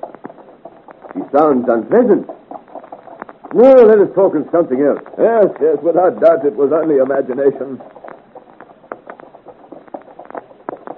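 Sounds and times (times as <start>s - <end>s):
horse hooves clip-clopping while travelling: 0.0s - 10.9s
speech: 1.3s - 2.4s, 3.5s - 7.9s.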